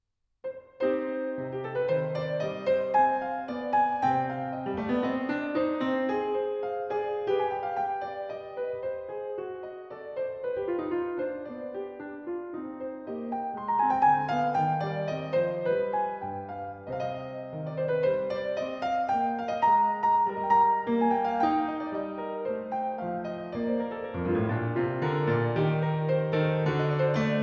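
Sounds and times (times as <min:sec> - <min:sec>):
baroque keyboard piece in C minor: 0:00.5 - 0:27.4.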